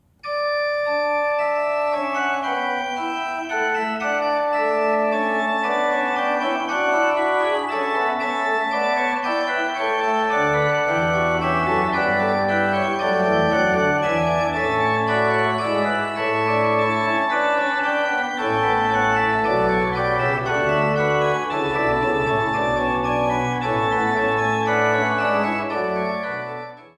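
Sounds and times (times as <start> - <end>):
pipe organ: 0.2 - 26.9.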